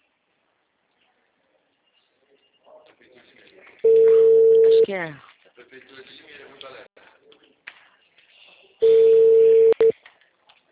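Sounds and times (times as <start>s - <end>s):
ringback tone on an outgoing phone call: 3.9s - 4.9s, 8.8s - 9.9s
speech: 4.9s - 6.9s.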